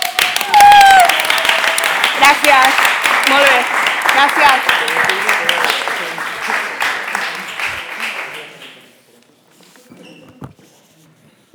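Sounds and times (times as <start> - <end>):
audience applause: 0.0 - 9.0
speech: 2.2 - 5.8.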